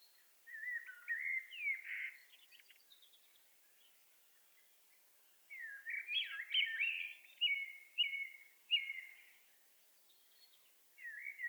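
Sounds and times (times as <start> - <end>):
Common blackbird Turdus merula song: 0.0 - 11.4.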